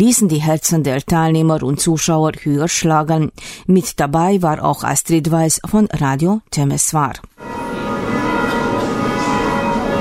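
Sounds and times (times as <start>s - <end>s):
speech: 0.0s - 7.7s
church bells ringing from tower: 7.4s - 9.9s.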